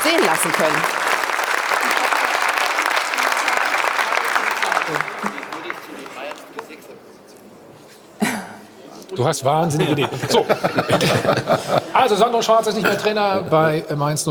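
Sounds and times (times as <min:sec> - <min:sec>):
applause: 0:00.0 - 0:06.8
speech: 0:00.3 - 0:01.0, 0:09.2 - 0:14.2
laughter: 0:04.9 - 0:05.8, 0:09.6 - 0:13.5.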